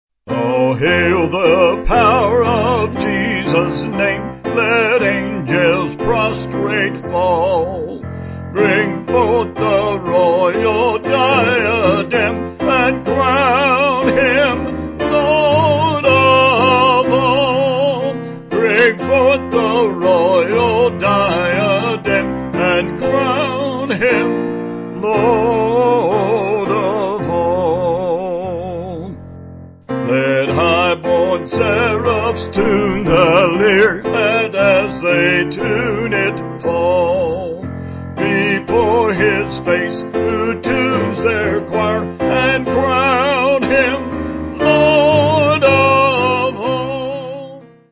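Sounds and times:
piano: 0:00.2 - 0:47.8
vocals: 0:00.2 - 0:47.8.

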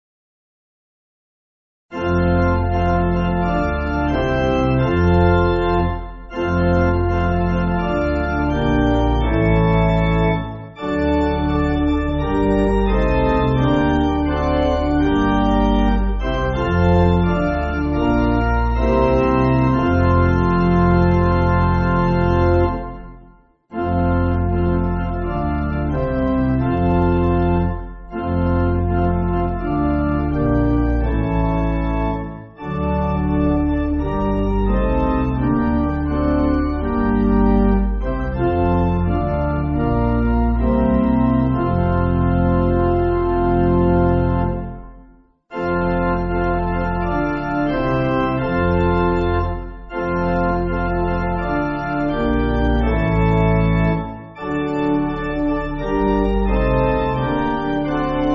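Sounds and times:
pipe organ church backing music: 0:01.9 - 0:58.3.

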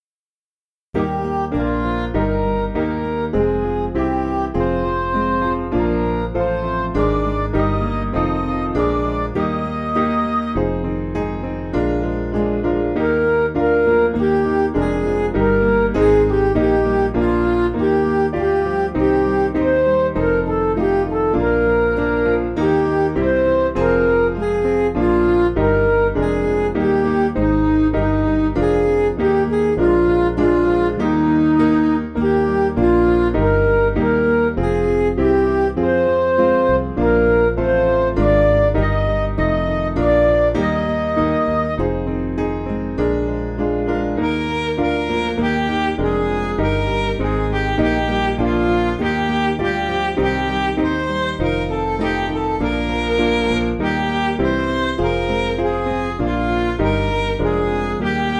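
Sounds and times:
midi music: 0:01.0 - 0:58.3.

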